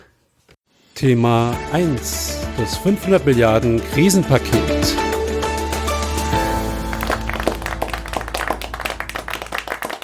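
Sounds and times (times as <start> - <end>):
speech: 1.0 - 5.0
applause from EU finance ministers: 6.0 - 10.0.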